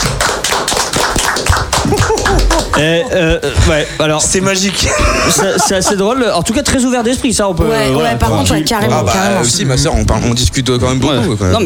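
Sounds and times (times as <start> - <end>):
group clapping: 0.0 - 3.4
laughter: 1.8 - 4.0, 4.7 - 6.4
speech: 2.8 - 11.6.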